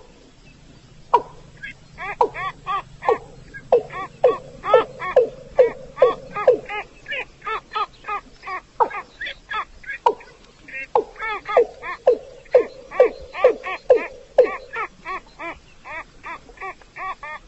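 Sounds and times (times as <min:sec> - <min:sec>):
rail nasal calls: 0:01.0 - 0:08.3, 0:11.0 - 0:15.7.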